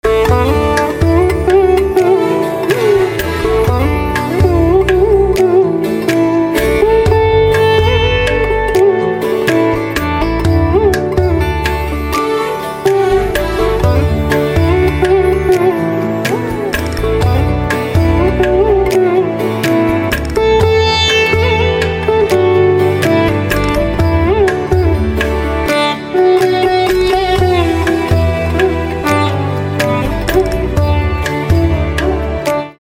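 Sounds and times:
sitar instrumental ringtone: 0.0s - 32.7s.

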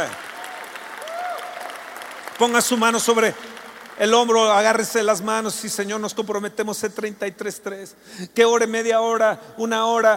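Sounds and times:
speech: 0.0s - 0.2s, 2.4s - 10.1s
audience applause: 0.0s - 5.0s.

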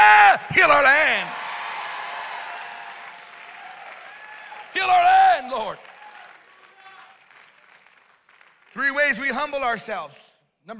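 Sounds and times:
audience clapping: 0.9s - 9.8s
speech: 8.7s - 10.7s.

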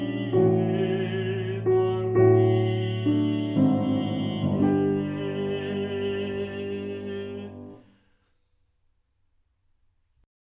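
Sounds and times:
tenor singing: 0.0s - 8.0s.

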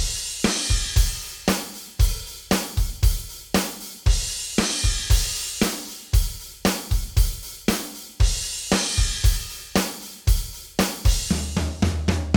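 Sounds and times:
rock drum kit: 0.0s - 12.3s.

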